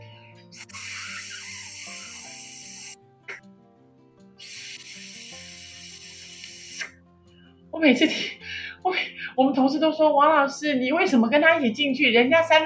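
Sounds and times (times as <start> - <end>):
voice imitating a breast pump expressing milk: 0.6 - 3.0, 4.4 - 6.9
speech: 7.8 - 12.6.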